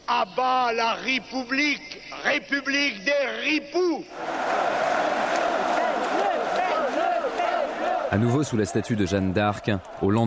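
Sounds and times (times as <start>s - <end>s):
speech: 0.1s - 4.8s, 8.1s - 10.2s
crowd cheering at a rally: 4.1s - 10.2s.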